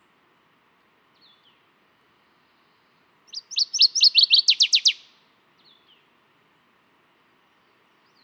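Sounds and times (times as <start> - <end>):
Northern Waterthrush Parkesia noveboracensis warbler: 3.3 - 5.1.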